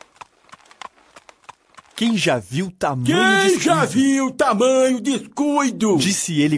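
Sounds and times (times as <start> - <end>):
horse hooves clip-clopping pulling a farmer's cart loaded with seeds: 0.0 - 2.7
person speaking loudly: 2.0 - 6.5
speech: 2.0 - 6.5.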